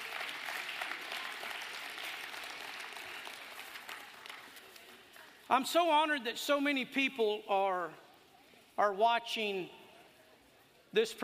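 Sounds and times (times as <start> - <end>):
audience applause: 0.0 - 4.7
speech: 5.5 - 8.0, 8.8 - 9.8, 10.9 - 11.2.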